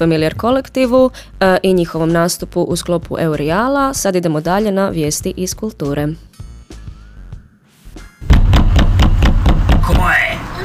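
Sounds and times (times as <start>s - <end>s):
speech: 0.0s - 6.4s
knocking on a door: 8.3s - 10.1s.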